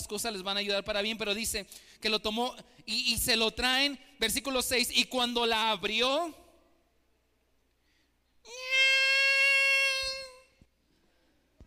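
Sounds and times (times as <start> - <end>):
speech: 0.0 - 6.4
voice imitating a baby crying: 8.5 - 10.6.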